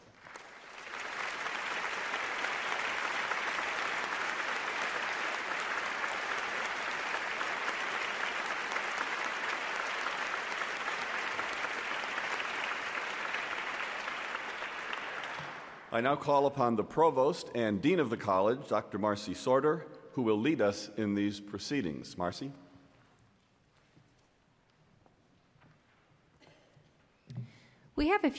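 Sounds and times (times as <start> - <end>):
round of applause: 0.0 - 16.0
speech: 15.9 - 22.6, 28.0 - 28.3.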